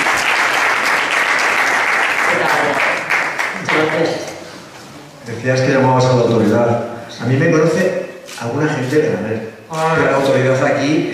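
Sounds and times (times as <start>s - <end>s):
applause greeting the mayor of Leganés at a cultural event: 0.0s - 4.2s
speech: 5.4s - 11.1s.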